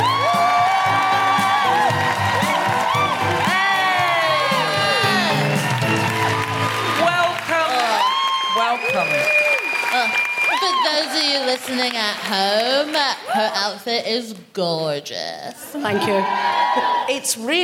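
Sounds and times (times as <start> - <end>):
studio audience whoops and shouts: 0.0 - 11.4, 15.9 - 17.2
studio audience clapping: 0.0 - 13.7
speech: 11.6 - 17.6.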